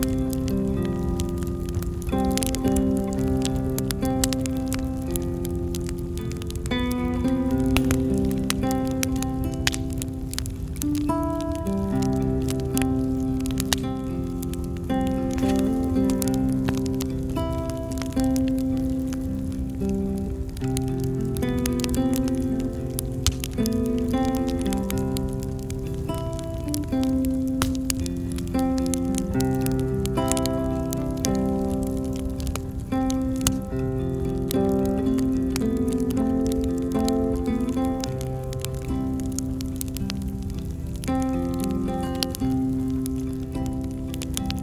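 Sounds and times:
campfire crackling and popping: 0.0 - 44.6.

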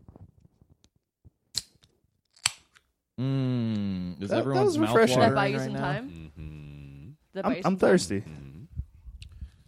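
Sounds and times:
can of sparkling water cracking open with clicks and pops: 1.5 - 2.9
speech: 3.2 - 3.4, 4.3 - 6.1, 7.4 - 8.4.

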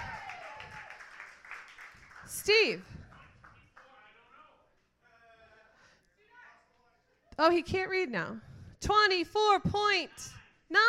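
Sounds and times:
audience clapping: 0.0 - 4.1
speech: 2.3 - 3.0, 7.4 - 10.8.

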